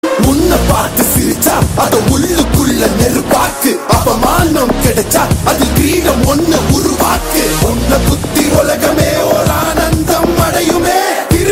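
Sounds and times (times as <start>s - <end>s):
lyrical music: 0.0s - 11.4s.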